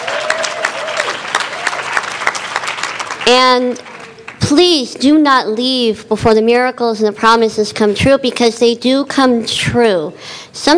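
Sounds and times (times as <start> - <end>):
audience applause: 0.0 - 4.4
speech: 3.3 - 10.7.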